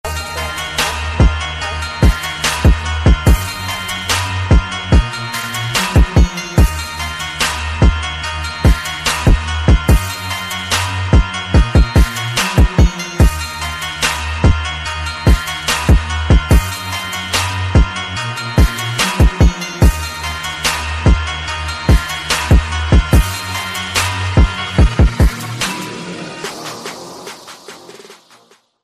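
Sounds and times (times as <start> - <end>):
Arabic trap music: 0.0 - 28.8.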